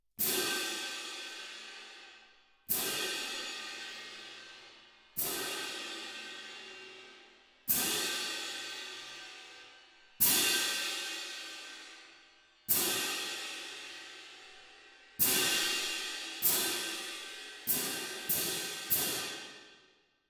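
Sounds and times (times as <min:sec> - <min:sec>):
percussion: 0:00.1 - 0:20.2.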